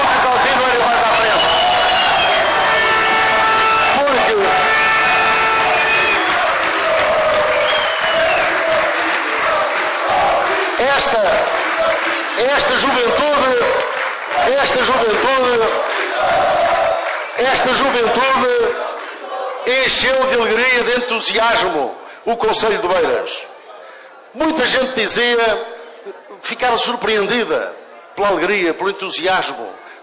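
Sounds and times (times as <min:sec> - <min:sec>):
crowd applauding: 0:00.0 - 0:20.3
speech: 0:11.0 - 0:11.6, 0:12.4 - 0:13.6, 0:14.5 - 0:16.6, 0:17.4 - 0:18.9, 0:19.7 - 0:23.5, 0:24.3 - 0:30.0.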